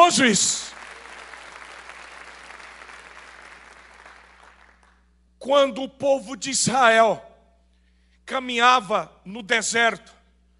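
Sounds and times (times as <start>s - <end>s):
audience applauding: 0.0s - 5.0s
speech: 0.1s - 0.7s, 5.4s - 7.3s, 8.3s - 10.2s.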